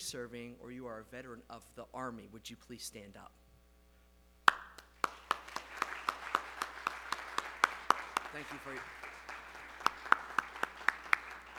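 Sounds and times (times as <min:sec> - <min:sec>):
speech: 0:00.1 - 0:03.5, 0:08.4 - 0:09.1
crowd clapping for standing veterans: 0:04.5 - 0:11.5.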